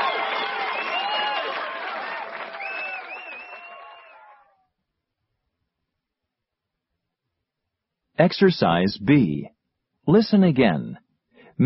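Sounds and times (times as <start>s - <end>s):
audience applause and cheering: 0.0s - 4.6s
speech: 8.2s - 11.0s.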